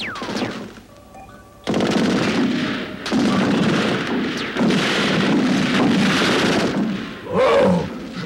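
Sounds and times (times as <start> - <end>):
rapid machine-gun fire: 0.0 - 0.8, 1.7 - 7.3
heavy artillery blasts: 1.7 - 8.2.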